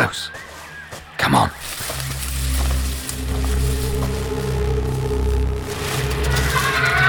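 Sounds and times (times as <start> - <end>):
speech: 0.0 - 0.4, 1.2 - 1.7
insects buzzing drone: 1.5 - 7.0.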